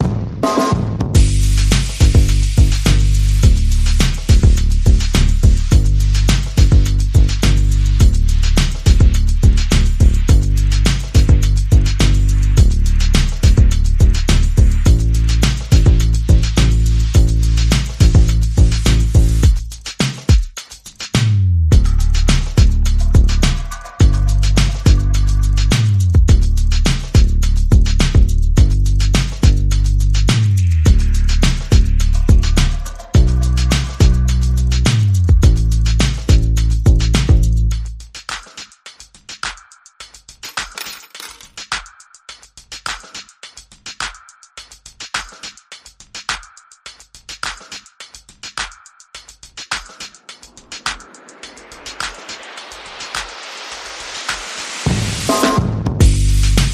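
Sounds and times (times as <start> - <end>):
bass: 0.0 - 19.9, 21.1 - 38.2, 55.6 - 56.7
percussion: 0.0 - 56.7.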